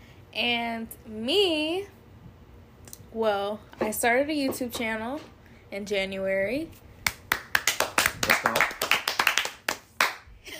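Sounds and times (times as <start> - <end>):
speech: 0.4 - 2.0, 3.1 - 6.8
hand claps: 7.0 - 10.3.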